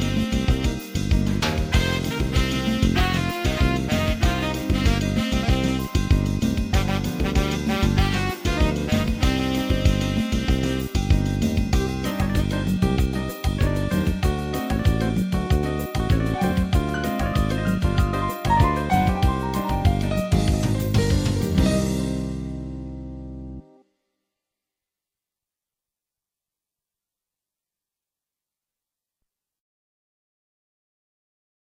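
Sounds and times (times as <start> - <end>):
fast bossa nova music: 0.0 - 23.6.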